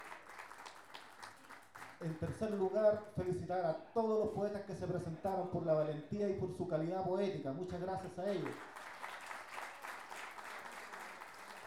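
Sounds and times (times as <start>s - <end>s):
audience applause: 0.0s - 2.6s, 8.4s - 11.6s
speech: 2.0s - 8.8s.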